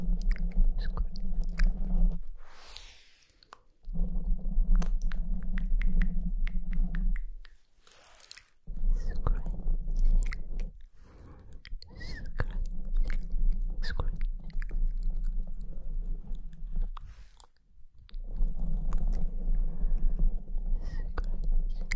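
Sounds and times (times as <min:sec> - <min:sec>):
steady low hum: 0:00.0 - 0:02.7, 0:03.8 - 0:07.5, 0:08.6 - 0:21.9
wet mouth clicks, smacks and chewing-like crackles: 0:00.0 - 0:21.9.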